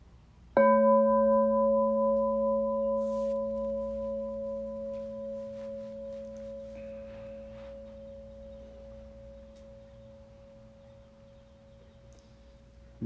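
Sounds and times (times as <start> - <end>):
meditation bell ringing: 0.6 - 10.8.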